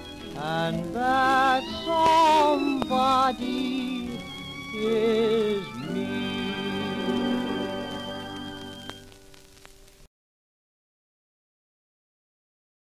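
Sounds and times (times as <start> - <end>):
singing: 0.0 - 8.8
society orchestra: 0.0 - 9.8.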